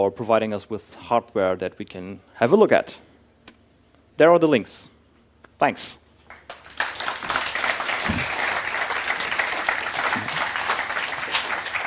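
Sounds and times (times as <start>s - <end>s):
speech: 0.0s - 3.1s, 4.2s - 4.9s, 5.6s - 6.0s
large audience applause after a talk: 6.3s - 11.8s.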